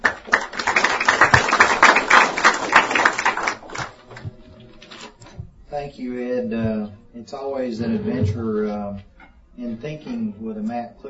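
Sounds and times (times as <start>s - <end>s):
audience applause welcoming a speaker: 0.0s - 4.3s
speech: 5.8s - 11.0s.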